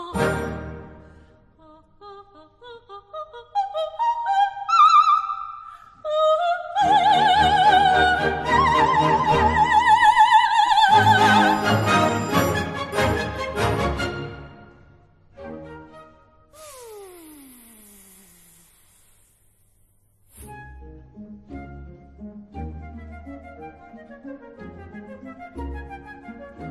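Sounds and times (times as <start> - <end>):
soprano singing an aria: 0.0 - 1.0, 1.6 - 5.4, 6.0 - 14.6.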